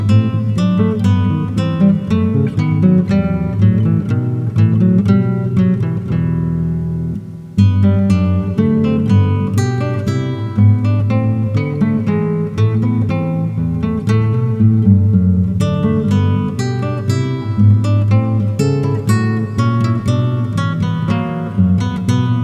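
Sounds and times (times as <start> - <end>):
bouree played on classical guitar: 0.0 - 22.4.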